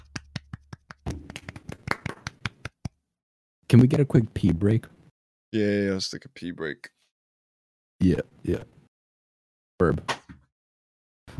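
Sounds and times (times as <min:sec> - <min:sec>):
sparse clapping from a few hands: 0:00.0 - 0:03.0
speech: 0:03.7 - 0:07.0, 0:08.0 - 0:08.8, 0:09.8 - 0:10.2.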